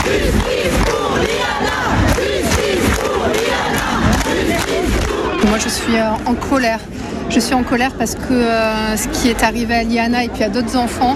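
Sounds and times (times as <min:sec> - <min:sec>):
protesters shouting outside courthouse: 0:00.0 - 0:06.3
speech: 0:05.6 - 0:11.1.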